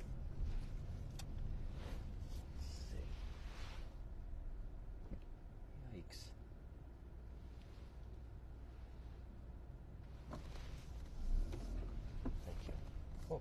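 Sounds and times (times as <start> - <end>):
street traffic with ATVs on Broad Street in Edgewood, Rhode Island: 0.0 - 13.3.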